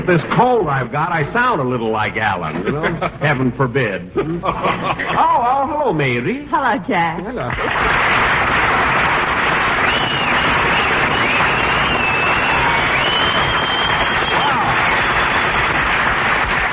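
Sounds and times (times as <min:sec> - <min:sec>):
speech: 0:00.0 - 0:08.2
laughter: 0:02.5 - 0:03.5, 0:04.2 - 0:05.5
audience applause: 0:07.5 - 0:16.7.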